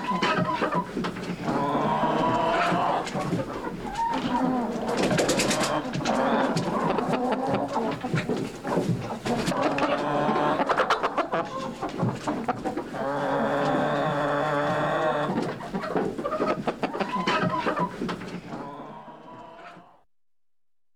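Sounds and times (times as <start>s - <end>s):
chickens clucking: 0.0s - 20.0s.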